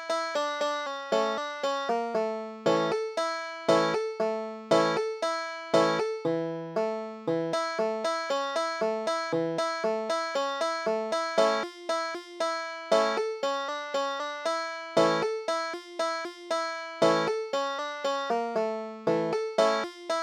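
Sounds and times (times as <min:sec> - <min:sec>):
banjo playing khosidl dance music: 0:00.0 - 0:20.2.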